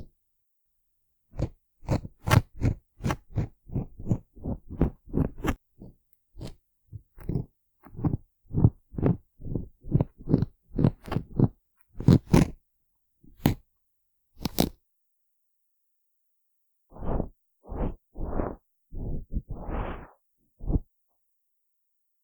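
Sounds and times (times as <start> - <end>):
ear cleaning sounds without dialogue: 1.4 - 12.6, 14.4 - 14.8, 16.9 - 20.8.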